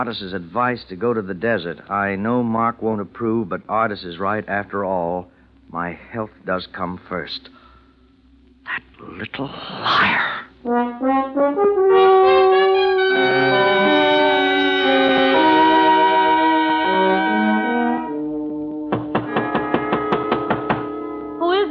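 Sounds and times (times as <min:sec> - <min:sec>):
speech: 0:00.0 - 0:07.6, 0:08.7 - 0:13.6
sustained orchestral music: 0:10.8 - 0:21.4
loud knocking on a door: 0:18.9 - 0:21.0.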